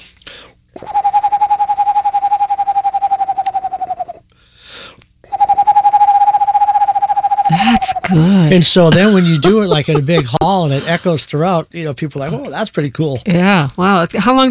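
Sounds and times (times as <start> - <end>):
person imitating Eastern Screech Owl call, whistled trill: 0.8 - 4.2, 5.3 - 8.3
speech: 8.1 - 14.4.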